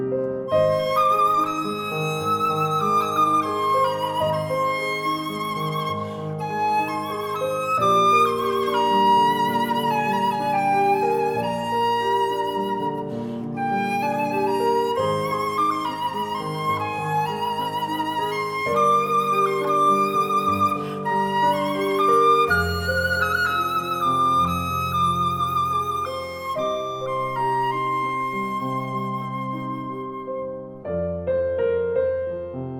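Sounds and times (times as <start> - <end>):
pan flute: 0.0 - 32.6.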